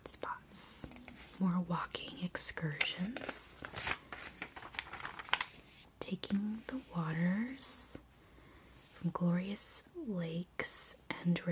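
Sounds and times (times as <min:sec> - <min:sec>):
magazine pages being flipped: 0:00.8 - 0:01.4, 0:02.6 - 0:05.9
speech: 0:01.4 - 0:03.5, 0:06.3 - 0:07.8, 0:09.0 - 0:11.4.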